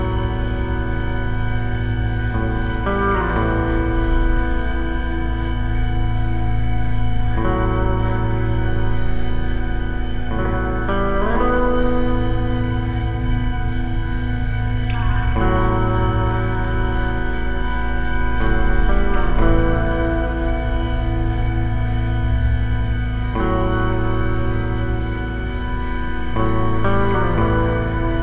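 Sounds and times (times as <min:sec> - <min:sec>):
eerie guitar instrumental: 0:00.0 - 0:28.2.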